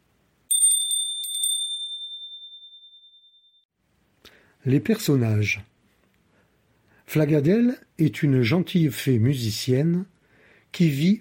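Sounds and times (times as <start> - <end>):
small bell ringing as a page-turn cue: 0.5 - 3.7
speech: 4.6 - 5.7, 7.1 - 10.1, 10.7 - 11.1.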